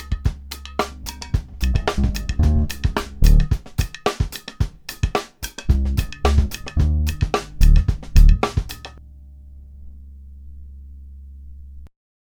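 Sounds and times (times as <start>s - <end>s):
Ibanez GIO bass: 0.0s - 3.6s, 5.7s - 11.9s
drums: 0.0s - 9.0s.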